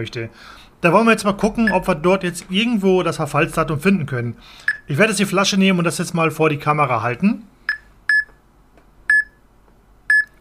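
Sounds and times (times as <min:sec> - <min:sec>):
speech: 0:00.0 - 0:07.5
app giving short bright electronic beeps: 0:07.7 - 0:08.4, 0:09.1 - 0:09.4, 0:10.1 - 0:10.3.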